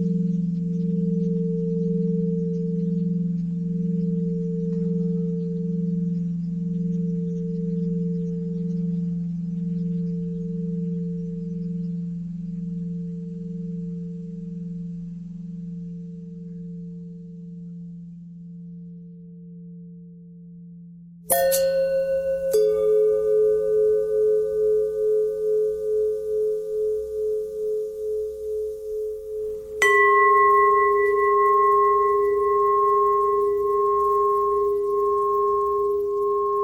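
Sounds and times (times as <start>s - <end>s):
long bending bell tones: 0.0s - 36.6s.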